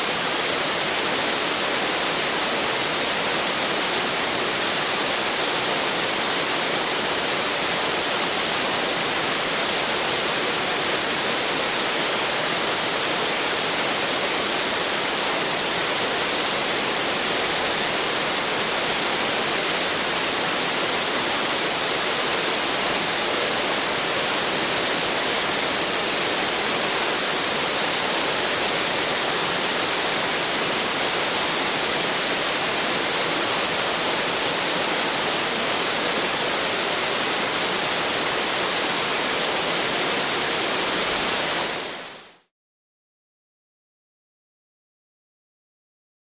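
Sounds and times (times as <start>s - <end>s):
large waterfall roar: 0.0s - 42.3s.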